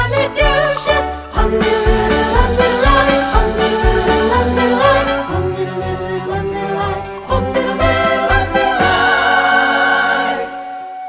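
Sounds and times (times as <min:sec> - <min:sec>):
backing vocals: 0:00.0 - 0:10.7.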